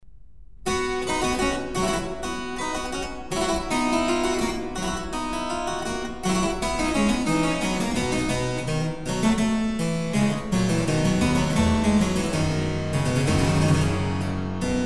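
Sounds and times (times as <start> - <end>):
andante in C: 0.8 - 14.8.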